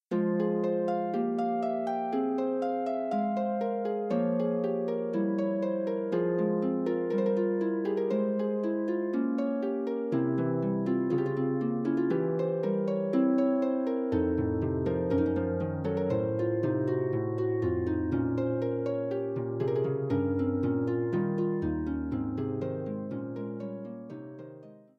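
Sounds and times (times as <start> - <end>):
harp prelude: 0.0 - 24.9.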